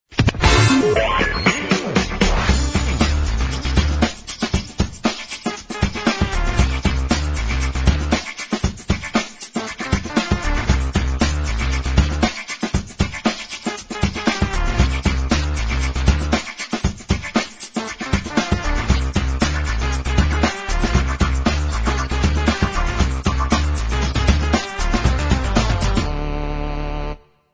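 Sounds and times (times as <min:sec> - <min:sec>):
funky music bed: 0:00.1 - 0:27.2.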